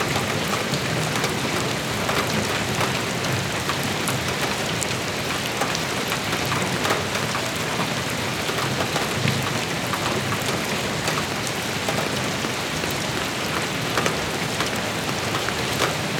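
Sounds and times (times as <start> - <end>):
rain: 0.0 - 16.1.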